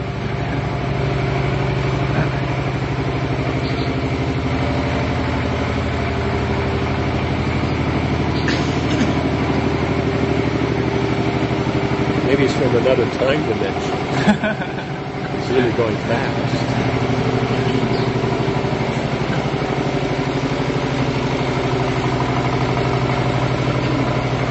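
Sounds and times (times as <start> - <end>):
motorized rickshaw engine droning: 0.0 - 24.4
laughter: 2.1 - 2.6, 14.0 - 18.0
speech: 12.8 - 14.7, 15.6 - 17.4.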